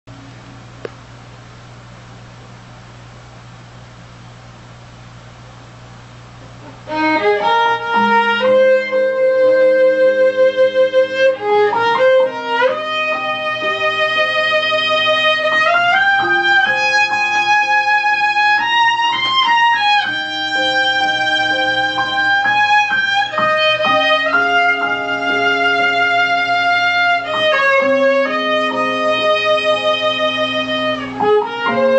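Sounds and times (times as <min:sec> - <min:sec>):
violin: 0:06.8 - 0:31.9.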